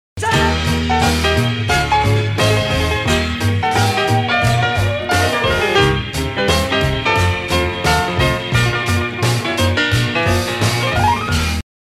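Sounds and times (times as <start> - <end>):
solo piano: 0.7 - 11.6.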